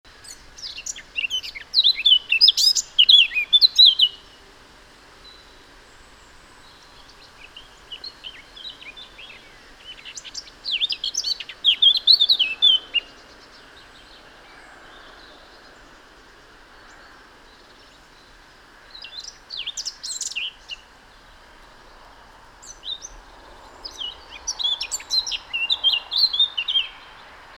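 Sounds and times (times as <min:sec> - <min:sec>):
Eurasian blackcap singing: 0:00.2 - 0:04.2, 0:07.5 - 0:13.1, 0:23.8 - 0:27.1.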